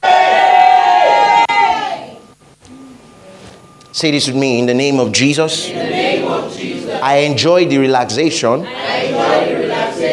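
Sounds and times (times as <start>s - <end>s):
audience shouting praise: 0.0s - 2.2s
speech: 4.0s - 10.1s.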